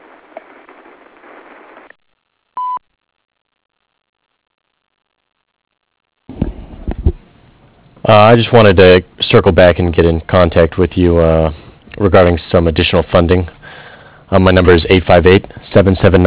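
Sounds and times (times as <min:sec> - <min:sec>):
voicemail beep: 0:02.6 - 0:02.8
speech: 0:08.0 - 0:13.6, 0:14.3 - 0:16.2.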